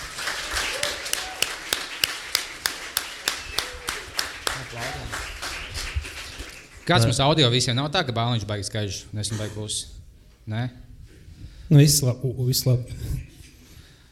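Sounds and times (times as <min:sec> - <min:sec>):
live audience applause: 0:00.0 - 0:07.1
speech: 0:06.9 - 0:10.9, 0:11.7 - 0:13.3.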